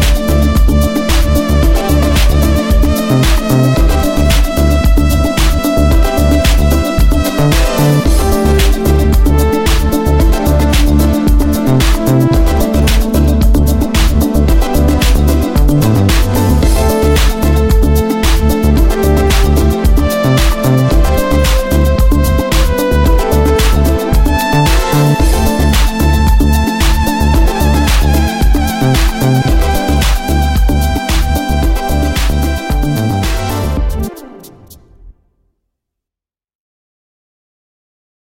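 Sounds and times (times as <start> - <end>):
Korg Trident mkII synthesizer: 0.0 - 35.4.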